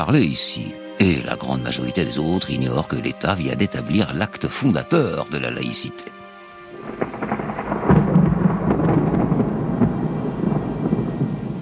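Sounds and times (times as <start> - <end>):
speech: 0.0 - 6.2
steady heavy rain at the church forecourt in Châtenay: 6.2 - 11.6.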